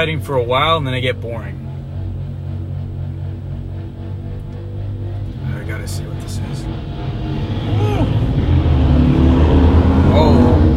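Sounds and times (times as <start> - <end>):
speech: 0.0 - 1.6, 5.7 - 8.2
group of motorcycles roaring past, one doing a burnout: 6.4 - 10.7.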